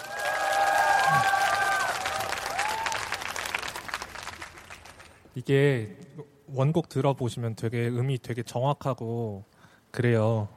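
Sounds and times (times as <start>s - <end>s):
cheering voices and whistles: 0.0s - 3.3s
audience applauding: 0.0s - 5.3s
speech: 5.4s - 10.5s.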